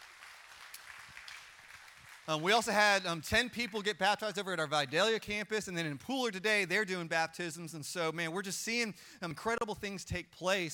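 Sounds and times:
audience applause: 0.0s - 2.6s
speech: 2.3s - 10.7s.

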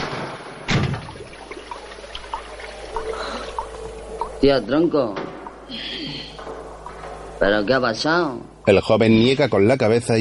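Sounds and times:
water poured by hand over wounds: 0.7s - 4.5s
speech: 4.4s - 6.0s, 7.4s - 10.1s.

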